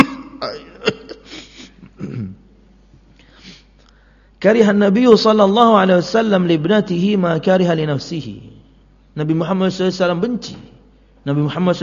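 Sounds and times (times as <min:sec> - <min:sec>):
person with Hajj cough coughing: 0:00.0 - 0:02.4
speech: 0:00.4 - 0:01.0, 0:04.4 - 0:08.5, 0:09.2 - 0:11.8.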